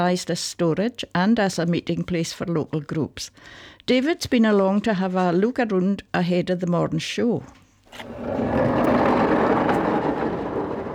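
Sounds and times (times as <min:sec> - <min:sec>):
speech: 0:00.0 - 0:09.0
sliding door rolling on its runners: 0:07.9 - 0:10.9.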